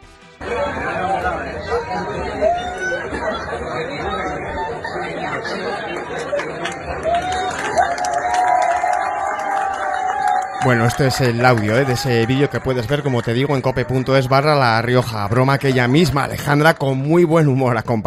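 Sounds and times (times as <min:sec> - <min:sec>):
high shouts: 0:00.4 - 0:03.4, 0:06.8 - 0:16.3
crowd laughing: 0:00.4 - 0:17.7
overlapping chatter: 0:00.4 - 0:18.0
speech: 0:10.6 - 0:18.0.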